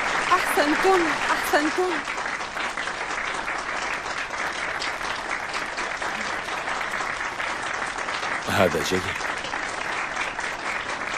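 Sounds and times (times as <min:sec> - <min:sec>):
audience applauding: 0:00.0 - 0:11.1
speech: 0:00.6 - 0:02.2, 0:08.5 - 0:09.3.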